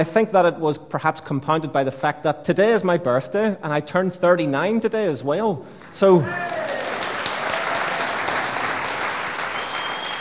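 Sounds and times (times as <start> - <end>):
speech: 0.0 - 6.7
audience applause for a speaker's birthday: 5.8 - 10.1.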